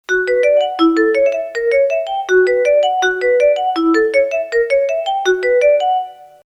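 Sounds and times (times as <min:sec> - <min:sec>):
xylophone: 0:00.0 - 0:06.4.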